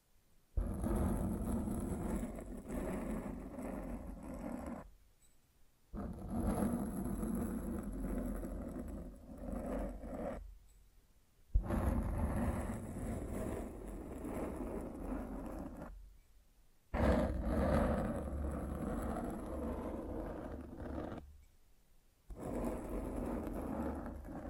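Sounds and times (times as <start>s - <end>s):
microphone scratching: 0.6s - 4.9s, 6.0s - 10.5s, 11.6s - 16.1s, 17.0s - 21.3s, 22.3s - 24.4s.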